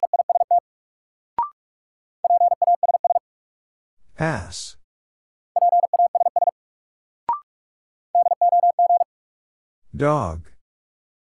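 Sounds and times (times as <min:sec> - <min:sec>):
Morse code tones spelling a word: 0:00.0 - 0:00.6, 0:02.2 - 0:03.2, 0:05.6 - 0:06.5, 0:08.2 - 0:09.1
speech: 0:04.2 - 0:04.8, 0:10.0 - 0:10.5.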